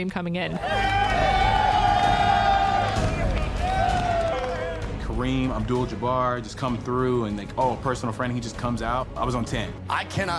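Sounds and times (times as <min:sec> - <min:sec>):
speech: 0:00.0 - 0:01.4, 0:05.2 - 0:10.3
men whooping and cheering: 0:00.6 - 0:05.0.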